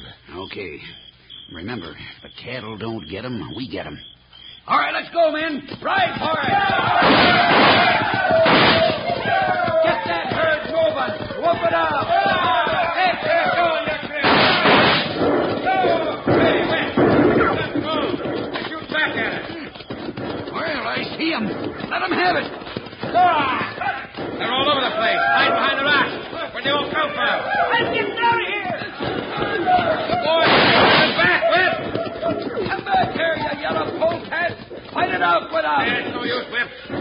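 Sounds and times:
speech: 0:00.5 - 0:10.3, 0:35.0 - 0:36.9
indistinct voices and shouting: 0:04.7 - 0:36.9
gunfire in a shootout: 0:06.4 - 0:10.5, 0:11.2 - 0:33.9, 0:35.8 - 0:36.9.

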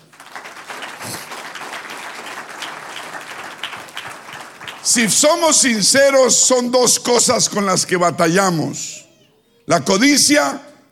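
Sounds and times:
audience applauding: 0:00.0 - 0:05.7
speech: 0:04.8 - 0:09.0, 0:09.7 - 0:10.9.

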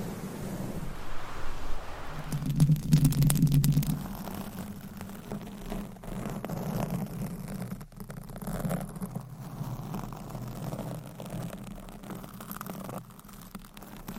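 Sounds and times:
low hum: 0:00.0 - 0:05.6
rubbing and scratching against a microphone: 0:02.3 - 0:14.1.

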